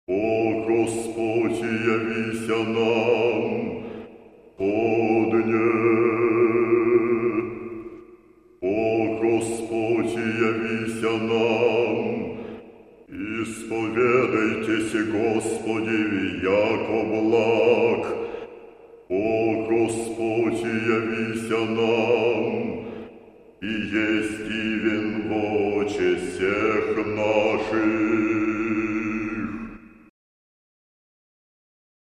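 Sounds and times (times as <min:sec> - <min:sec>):
Russian monks: 0:00.1 - 0:30.1.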